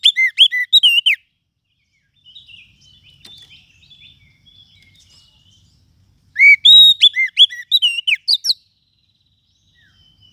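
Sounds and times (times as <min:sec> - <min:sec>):
lovebird shrill chirps and whistles: 0:00.0 - 0:01.2, 0:06.4 - 0:08.7.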